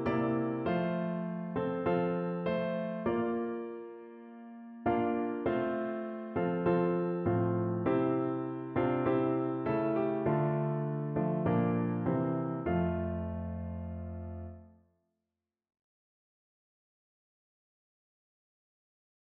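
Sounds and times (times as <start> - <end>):
piano: 0.0 - 14.8.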